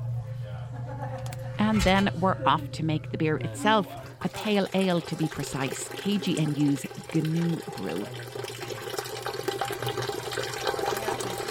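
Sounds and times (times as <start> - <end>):
speech: 1.6 - 8.5
wort pouring in during pale ale brewing: 4.3 - 11.5.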